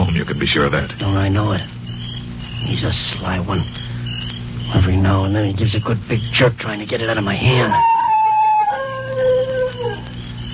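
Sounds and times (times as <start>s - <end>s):
speech: 0.2s - 1.8s, 2.6s - 3.8s, 4.7s - 7.9s
dog howling: 7.4s - 10.5s.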